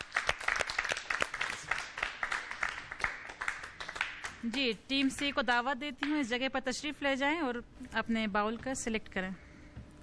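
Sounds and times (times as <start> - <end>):
loud applause: 0.0 - 4.3
speech: 4.4 - 9.4.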